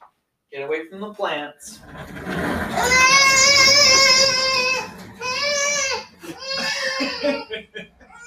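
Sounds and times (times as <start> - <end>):
speech: 0.5 - 3.6
laughter: 1.8 - 8.2
child screaming and crying: 2.8 - 7.4.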